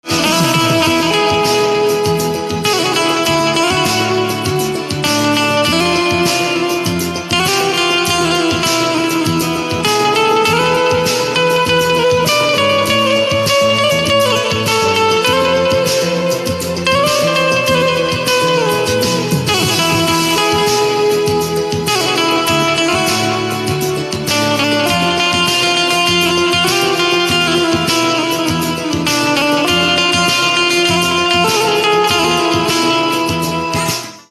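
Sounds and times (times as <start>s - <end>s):
instrumental banjo ringtone: 0.0s - 34.3s.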